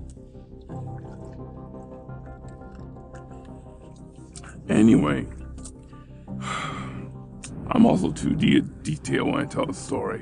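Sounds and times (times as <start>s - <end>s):
person drinking Poland Spring bottled spring water: 0.0s - 4.7s, 5.3s - 7.0s
speech: 4.7s - 5.4s, 7.8s - 10.2s.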